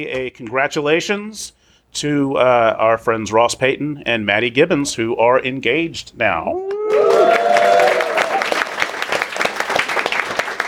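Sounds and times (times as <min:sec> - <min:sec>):
speech: 0:00.0 - 0:07.4
high cheer: 0:06.6 - 0:10.6
crowd clapping: 0:06.7 - 0:10.6.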